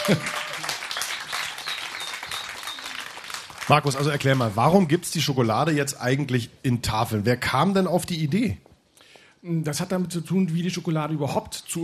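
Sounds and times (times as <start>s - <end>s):
audience applause: 0.0s - 4.6s
speech: 0.1s - 0.4s, 3.7s - 8.7s, 9.4s - 11.8s.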